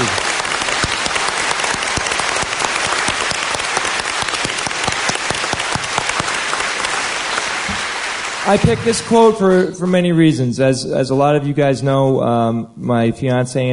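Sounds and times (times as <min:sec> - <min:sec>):
audience applause: 0:00.0 - 0:09.6
speech: 0:08.5 - 0:13.7.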